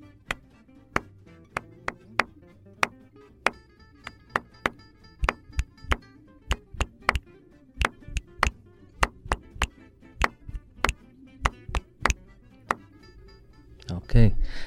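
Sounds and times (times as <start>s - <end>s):
two interlocking repeating tapped ostinato rhythms: 1.0s - 7.2s, 7.8s - 12.8s.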